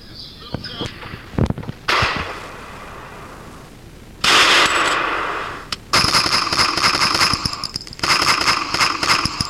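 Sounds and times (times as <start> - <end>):
gunshots in a comedy sketch: 1.8 - 3.4, 4.2 - 9.4.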